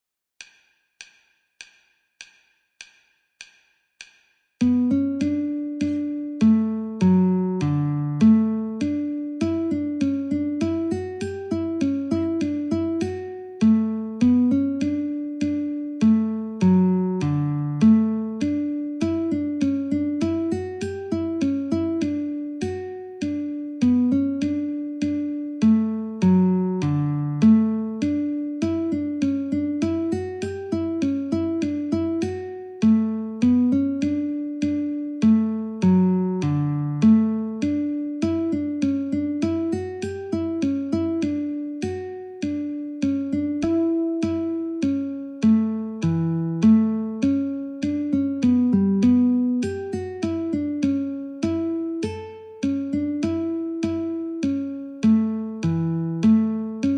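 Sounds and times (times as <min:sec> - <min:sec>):
guitar metronome at 50: 0:04.6 - 0:56.9.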